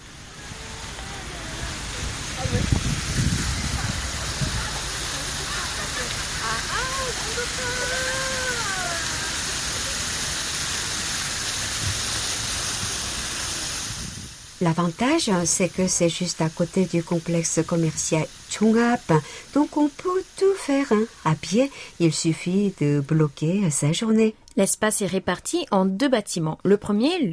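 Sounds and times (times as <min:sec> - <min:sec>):
Cheonggyecheon stream flowing through central Seoul: 0:00.0 - 0:16.1
speech: 0:14.6 - 0:27.3.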